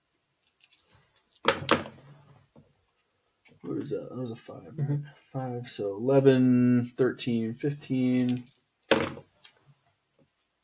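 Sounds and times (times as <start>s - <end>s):
speech: 3.7s - 8.6s
dice rolling on a table: 8.2s - 9.2s.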